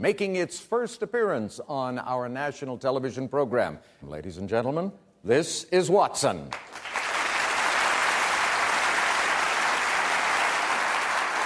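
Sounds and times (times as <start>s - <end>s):
speech: 0.0s - 7.0s
audience applause: 6.5s - 11.4s.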